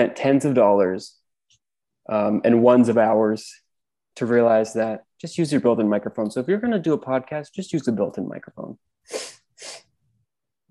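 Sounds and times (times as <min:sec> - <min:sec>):
speech: 0:00.0 - 0:01.2, 0:02.1 - 0:03.6, 0:04.2 - 0:09.8
person sniffling: 0:09.0 - 0:10.0.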